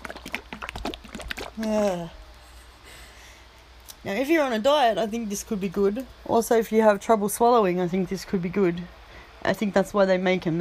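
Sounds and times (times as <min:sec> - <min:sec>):
container of mildly thick white tea shaken: 0:00.0 - 0:01.6
speech: 0:01.6 - 0:02.2, 0:04.0 - 0:10.6.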